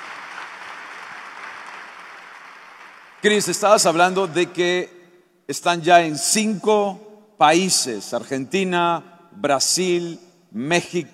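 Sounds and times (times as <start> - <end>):
audience applause: 0.0 - 3.3
speech: 3.2 - 11.1.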